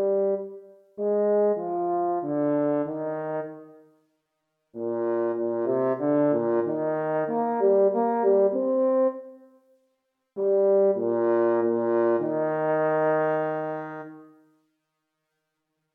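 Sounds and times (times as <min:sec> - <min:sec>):
duo of horns playing a sonatina in B flat major: 0:00.0 - 0:03.7, 0:04.8 - 0:09.3, 0:10.4 - 0:14.3.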